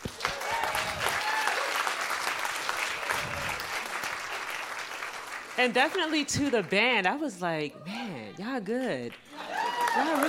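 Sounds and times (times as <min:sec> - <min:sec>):
audience applause: 0:00.0 - 0:06.3, 0:09.2 - 0:10.2
speech: 0:05.6 - 0:09.3, 0:10.0 - 0:10.2.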